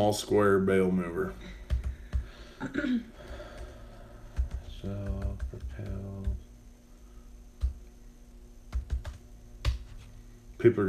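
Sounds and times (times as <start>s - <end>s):
speech: 0.0s - 1.6s, 2.6s - 3.1s, 4.8s - 6.4s, 10.6s - 10.8s
typing a Google search on a computer keyboard: 1.6s - 2.4s, 3.2s - 6.4s, 7.6s - 7.9s, 8.7s - 10.1s.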